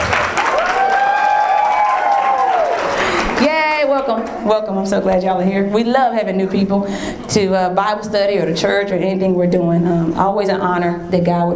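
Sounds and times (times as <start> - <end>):
loud audience clapping: 0.0 - 4.4
speech: 4.0 - 11.5.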